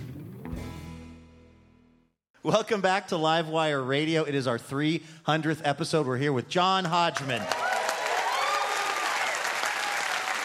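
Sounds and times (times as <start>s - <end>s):
speech: 2.4s - 7.6s
audience applause: 7.2s - 10.4s
whoops and cheers: 7.4s - 10.4s.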